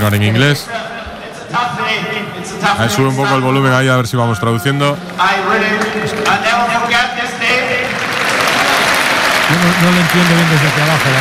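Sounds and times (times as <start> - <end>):
speech: 0.0 - 0.9, 1.5 - 6.9, 9.6 - 11.1
amplified voice speaking: 0.0 - 7.9
large crowd applauding: 5.0 - 11.1.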